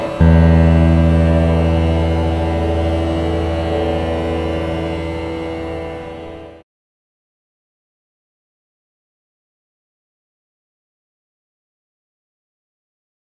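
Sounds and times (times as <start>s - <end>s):
aeolian guitar: 0.2s - 6.4s.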